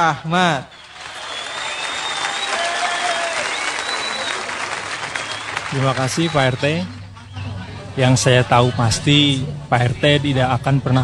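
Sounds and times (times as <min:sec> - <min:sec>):
speech: 0:00.0 - 0:00.8, 0:05.7 - 0:07.0, 0:08.0 - 0:11.0
laughter: 0:00.0 - 0:11.0
audience applause for a comedian at a comedy show: 0:00.3 - 0:08.9.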